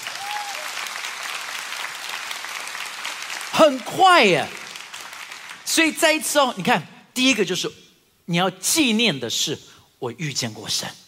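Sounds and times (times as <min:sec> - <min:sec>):
audience clapping: 0:00.0 - 0:05.9
speech: 0:03.6 - 0:04.6, 0:05.7 - 0:11.0.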